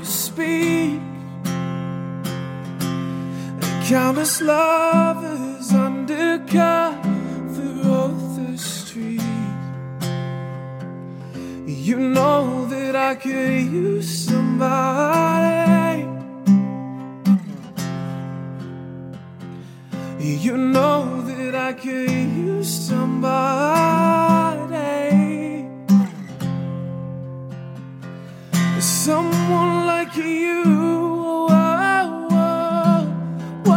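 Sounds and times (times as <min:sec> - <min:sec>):
vocalist singing: 0:00.0 - 0:01.4, 0:03.6 - 0:09.7, 0:11.6 - 0:16.4, 0:20.2 - 0:25.7, 0:28.8 - 0:33.7
guitar: 0:00.0 - 0:33.7.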